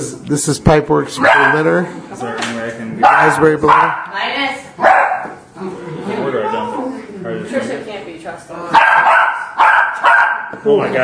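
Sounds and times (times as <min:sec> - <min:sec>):
speech: 0:00.0 - 0:04.9, 0:10.5 - 0:11.0
dog barking: 0:01.2 - 0:01.7, 0:03.0 - 0:04.1, 0:04.8 - 0:05.4, 0:08.7 - 0:10.6.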